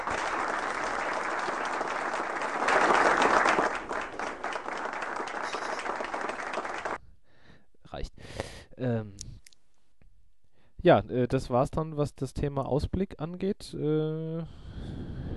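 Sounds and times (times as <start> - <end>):
clapping applause: 0.0 - 7.0
speech: 10.8 - 15.0.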